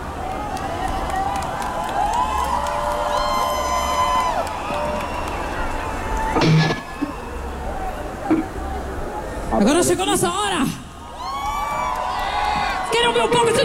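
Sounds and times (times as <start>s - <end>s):
audience clapping for a band: 0.2s - 6.4s, 11.7s - 13.1s
crowd cheering and whooping for a band: 0.2s - 8.3s, 11.0s - 13.6s
speech: 9.6s - 10.8s.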